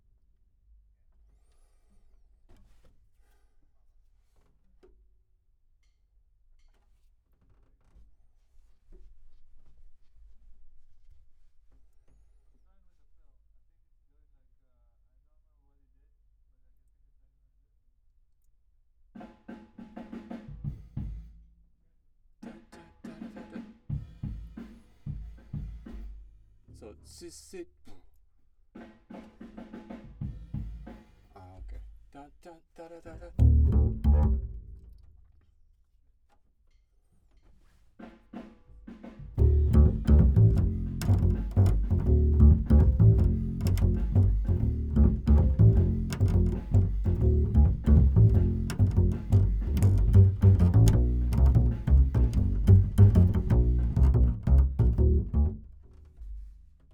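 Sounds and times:
bass: 0:33.2 - 0:35.2, 0:39.4 - 0:56.9.

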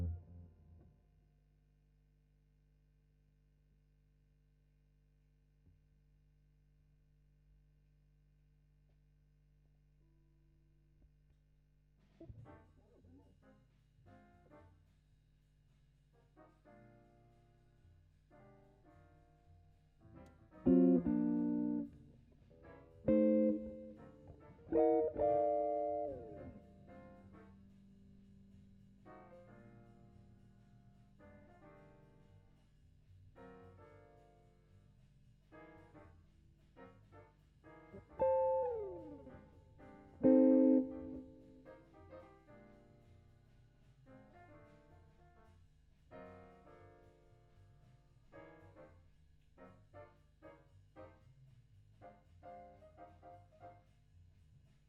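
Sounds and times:
guitar: 0:20.2 - 0:28.4, 0:37.9 - 0:42.8.

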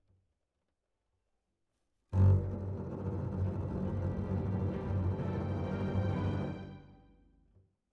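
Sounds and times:
double basses: 0:02.2 - 0:06.1.

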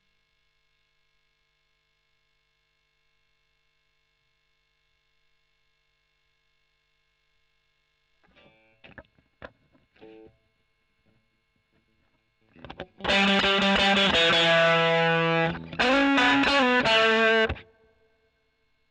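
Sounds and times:
overdriven electric guitar: 0:12.5 - 0:17.7.

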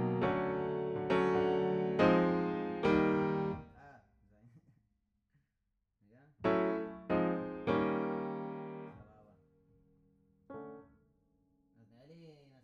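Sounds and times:
piano note B: 0:00.0 - 0:03.7, 0:06.5 - 0:09.0.

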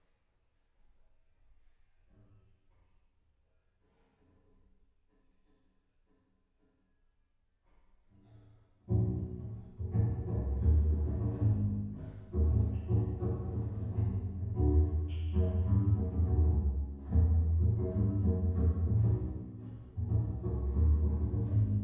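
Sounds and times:
bass: 0:08.3 - 0:21.8.

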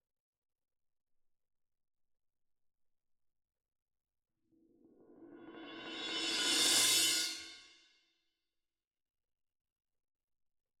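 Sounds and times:
cymbal: 0:05.0 - 0:07.9.

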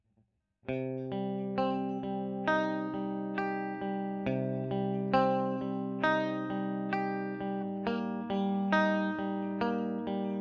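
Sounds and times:
electric guitar recorded with a Royer microphone: 0:00.7 - 0:10.3.

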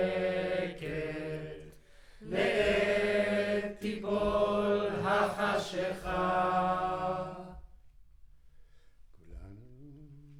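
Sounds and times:
choir recorded with center U47 microphone: 0:00.0 - 0:07.8.

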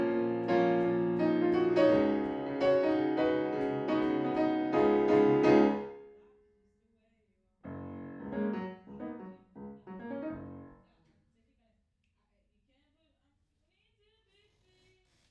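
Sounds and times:
piano in a room: 0:00.0 - 0:06.1, 0:07.7 - 0:10.8.

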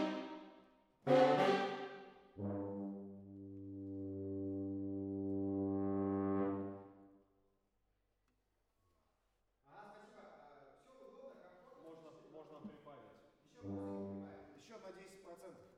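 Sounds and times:
horns playing: 0:00.0 - 0:00.4, 0:01.0 - 0:06.9, 0:13.6 - 0:14.5.

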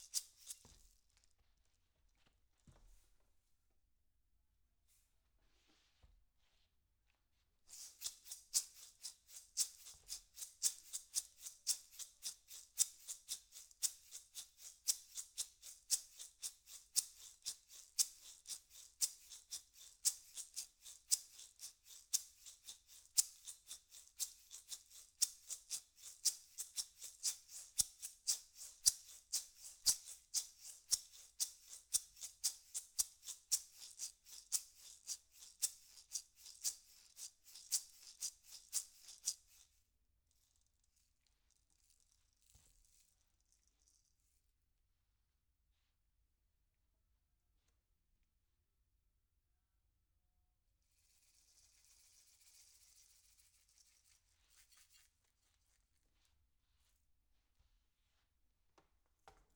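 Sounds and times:
percussion: 0:00.0 - 0:01.1, 0:07.7 - 0:39.8, 0:51.0 - 0:55.1, 0:59.2 - 0:59.5.

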